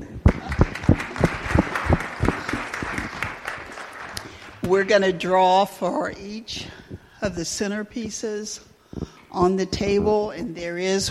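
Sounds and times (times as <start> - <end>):
round of applause: 0.3 - 4.7
speech: 4.7 - 8.7, 9.3 - 11.1.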